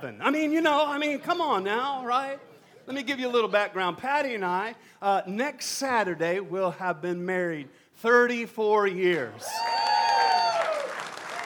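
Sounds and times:
speech: 0:00.1 - 0:09.9
audience clapping: 0:09.5 - 0:11.4.

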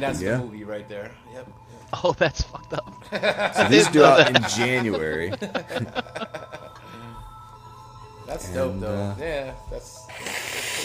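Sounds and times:
speech: 0:00.0 - 0:06.6, 0:08.3 - 0:10.6
laughter: 0:02.0 - 0:07.0
person blowing nose: 0:10.1 - 0:10.8.

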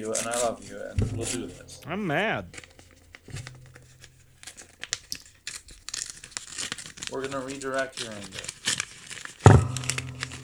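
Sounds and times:
speech: 0:00.0 - 0:02.7, 0:07.1 - 0:08.6
envelope being torn open: 0:04.4 - 0:10.4.

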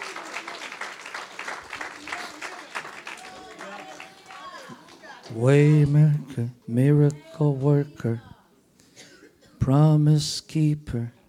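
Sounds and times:
applause: 0:00.0 - 0:06.0
speech: 0:05.3 - 0:08.3, 0:09.6 - 0:11.2.

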